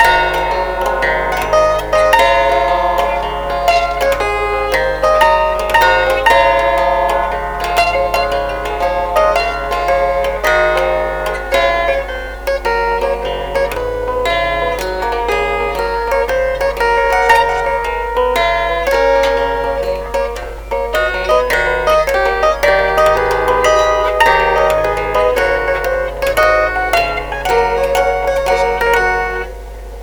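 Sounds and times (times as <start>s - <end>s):
chordophone: 0.0s - 30.0s.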